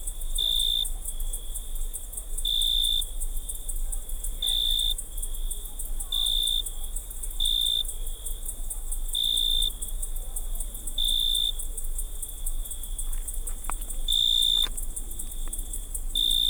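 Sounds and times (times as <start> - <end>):
insects at night on Unije Island in Croatia: 0.0 - 16.4.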